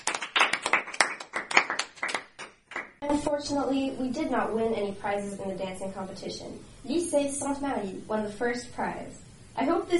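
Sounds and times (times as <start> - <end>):
audience clapping for a DJ and rapper at a school event: 0.0 - 3.0
speech: 3.1 - 9.9.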